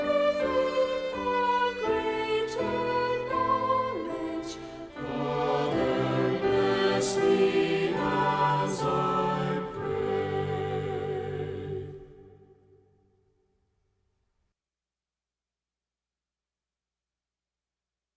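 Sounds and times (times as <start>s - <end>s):
music: 0.0s - 13.4s.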